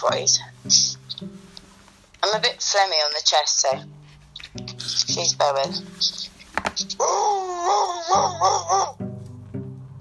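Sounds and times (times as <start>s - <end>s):
speech: 0.0s - 1.4s, 2.2s - 6.2s, 6.8s - 9.0s
person imitating a Rottweiler howling: 7.0s - 9.0s.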